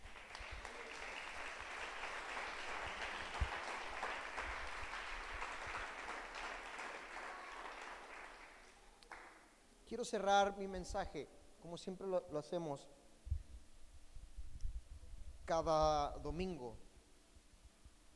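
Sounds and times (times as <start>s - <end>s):
audience applauding: 0.0s - 9.4s
speech: 9.9s - 13.0s, 15.5s - 16.8s.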